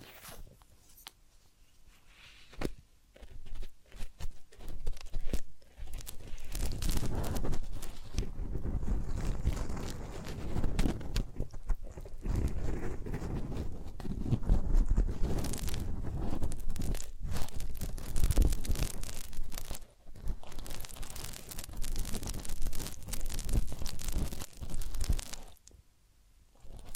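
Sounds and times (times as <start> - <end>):
massage and ear cleaning rubbing and scratching: 0.0 - 1.1, 2.0 - 25.8, 26.5 - 26.9.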